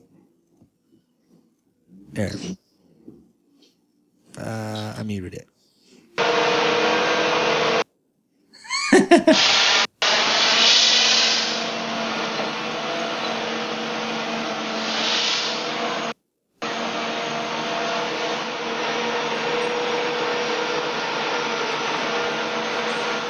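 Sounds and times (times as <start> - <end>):
speech: 2.2 - 2.6, 4.5 - 5.5, 9.3 - 9.6
steam hissing from mechanical elephant: 6.2 - 7.8, 8.9 - 23.2
laughter: 8.6 - 9.5.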